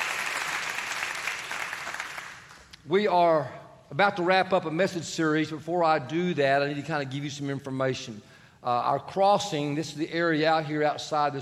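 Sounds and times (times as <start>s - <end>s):
audience clapping: 0.0s - 2.8s
speech: 2.9s - 11.4s.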